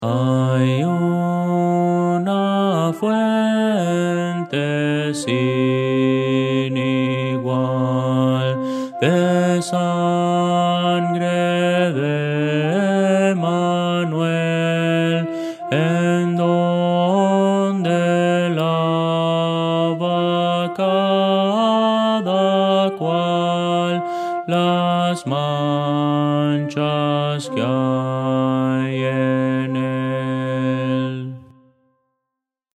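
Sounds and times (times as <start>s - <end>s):
contralto voice: 0.0s - 31.6s.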